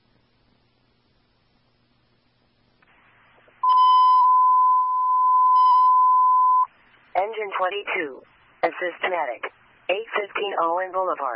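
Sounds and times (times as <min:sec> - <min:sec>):
fire station dispatch alarm tone: 0:03.6 - 0:06.7
speech: 0:07.5 - 0:11.3.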